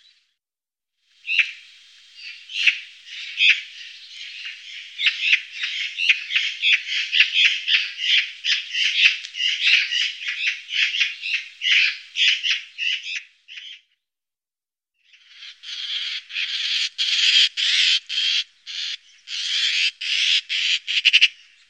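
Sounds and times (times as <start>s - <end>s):
magpie calling: 1.3s - 13.8s, 15.1s - 21.6s.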